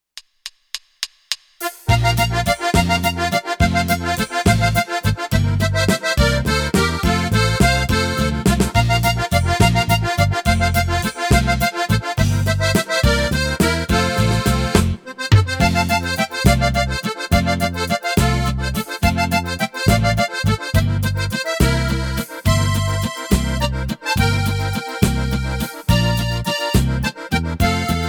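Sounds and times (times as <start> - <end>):
laendler with melody: 1.8 - 28.0.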